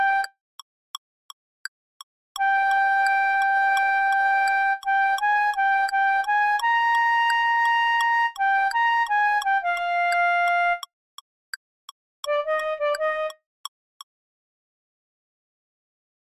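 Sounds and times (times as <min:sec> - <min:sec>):
melody: 0:02.4 - 0:10.8, 0:12.3 - 0:13.4.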